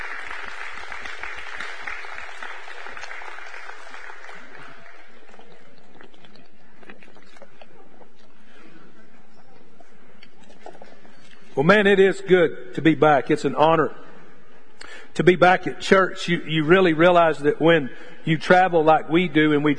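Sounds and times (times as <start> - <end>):
crowd applause: 0.0 - 5.8
speech: 11.6 - 14.0, 15.2 - 19.7.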